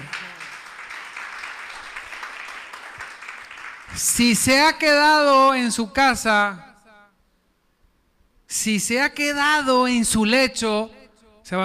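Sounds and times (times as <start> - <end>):
audience applause: 0.0 - 4.0
speech: 4.0 - 6.7, 8.6 - 11.6.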